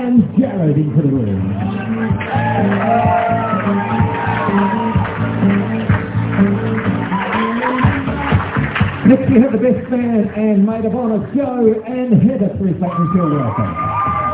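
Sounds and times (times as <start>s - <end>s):
speech: 0.4s - 2.4s, 9.4s - 14.0s
crowd applauding and cheering: 1.5s - 11.3s, 12.9s - 14.3s
people shouting: 1.6s - 5.2s, 12.9s - 14.3s.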